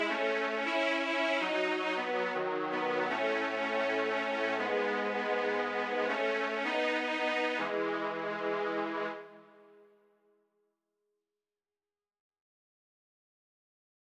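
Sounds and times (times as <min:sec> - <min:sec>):
strings: 0:00.0 - 0:09.8.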